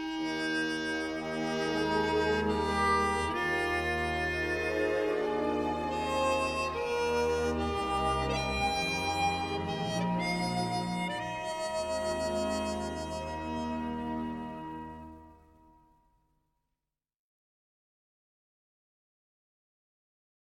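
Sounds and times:
Dixieland music on harmonica: 0.0 - 15.3.

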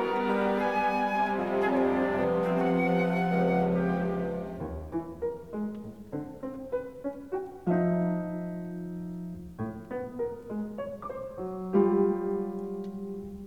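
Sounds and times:
orchestra playing: 0.0 - 5.6
piano: 0.0 - 13.4.

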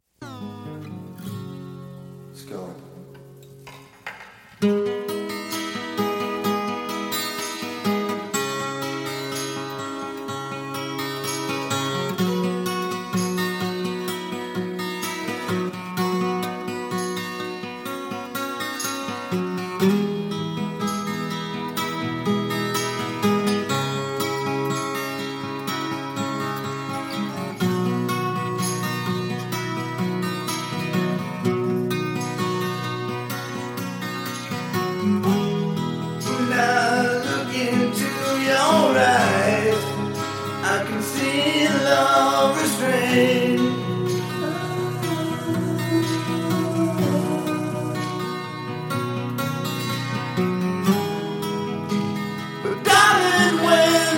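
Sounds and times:
acoustic music: 0.0 - 54.1.

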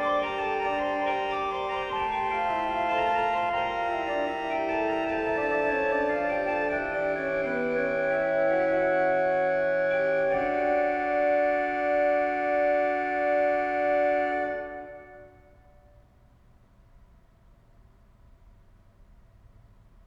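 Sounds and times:
organ chorale prelude: 0.0 - 16.0.

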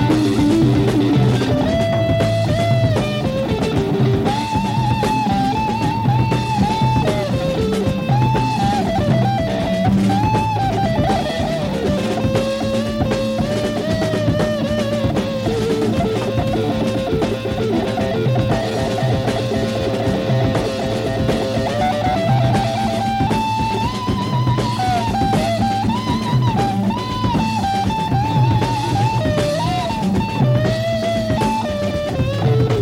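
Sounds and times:
instrumental jam: 0.0 - 32.7.

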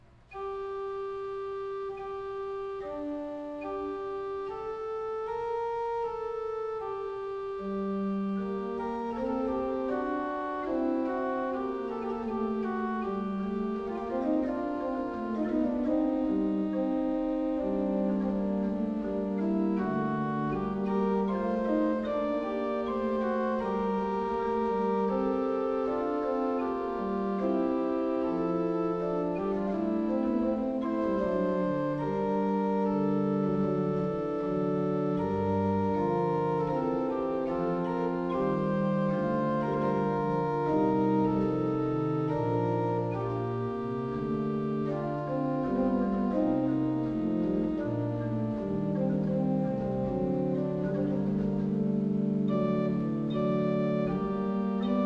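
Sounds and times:
organ chorale prelude: 0.0 - 55.0.

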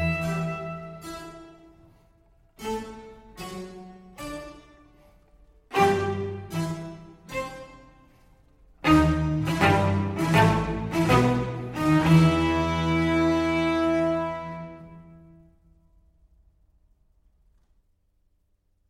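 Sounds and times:
violin and strings largo in C major: 0.0 - 15.0.

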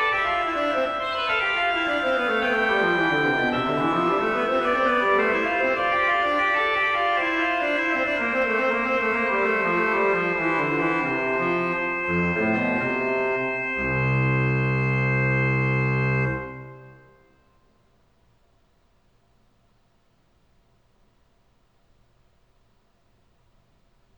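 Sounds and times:
organ chorale prelude: 0.0 - 17.3.

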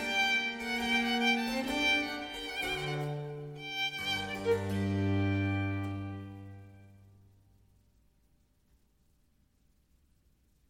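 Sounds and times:
slow violin sonata movement in G minor: 0.0 - 7.1.

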